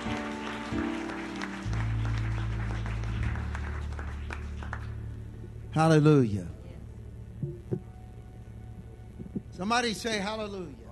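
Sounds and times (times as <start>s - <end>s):
audience clapping hands: 0.0s - 5.4s
speech: 5.8s - 6.6s, 9.6s - 10.8s.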